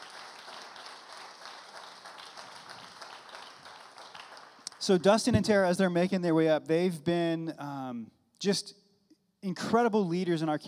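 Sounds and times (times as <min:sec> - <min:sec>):
audience clapping: 0:00.0 - 0:05.3
speech: 0:04.8 - 0:08.8, 0:09.4 - 0:10.6.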